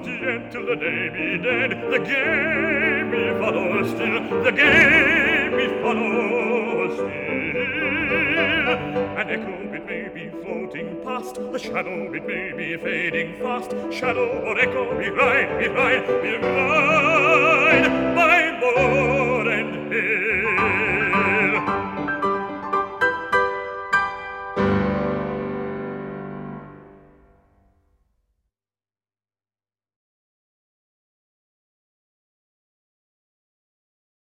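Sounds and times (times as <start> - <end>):
person singing: 0.0 - 22.5
piano: 0.0 - 27.8.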